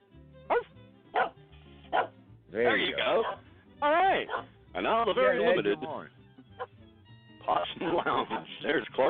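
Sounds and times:
dog barking: 0:00.5 - 0:02.2, 0:03.1 - 0:03.5, 0:04.2 - 0:04.6, 0:08.2 - 0:08.6
speech: 0:02.5 - 0:06.2, 0:07.5 - 0:09.0.

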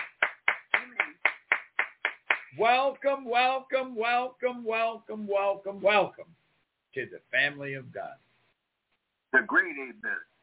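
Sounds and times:
church congregation clapping rhythmically in unison: 0:00.0 - 0:03.2
speech: 0:02.6 - 0:08.3, 0:09.3 - 0:10.3.

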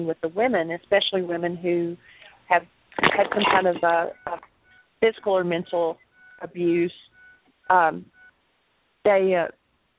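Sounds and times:
speech: 0:00.0 - 0:07.0, 0:07.7 - 0:08.2, 0:09.0 - 0:09.6
buzzy electronic beeps on a call participant's phone line: 0:03.3 - 0:08.4.

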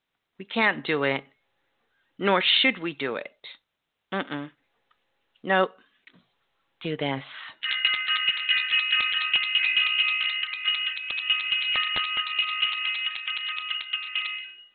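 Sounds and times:
speech: 0:00.4 - 0:01.3, 0:02.2 - 0:04.6, 0:05.4 - 0:05.8, 0:06.8 - 0:07.4
bell ringing: 0:07.6 - 0:14.7.

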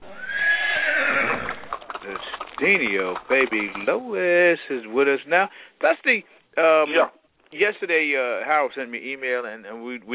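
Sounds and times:
horse whinnying as a rider arrives: 0:00.0 - 0:02.6
speech: 0:02.6 - 0:10.1.

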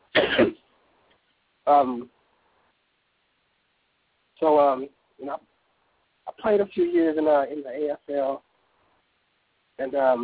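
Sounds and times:
person clearing throat: 0:00.1 - 0:00.6
speech: 0:01.7 - 0:02.2, 0:04.4 - 0:05.5, 0:06.3 - 0:08.5, 0:09.8 - 0:10.2.

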